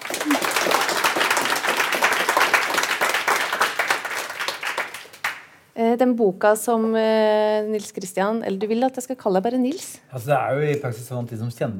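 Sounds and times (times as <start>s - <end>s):
audience applause for panel: 0.0s - 5.5s
speech: 5.8s - 11.7s.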